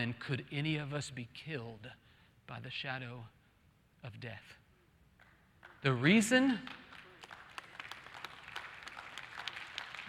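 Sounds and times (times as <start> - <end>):
speech: 0.0 - 3.4, 4.0 - 4.6, 5.8 - 6.8
audience clapping: 5.2 - 10.0.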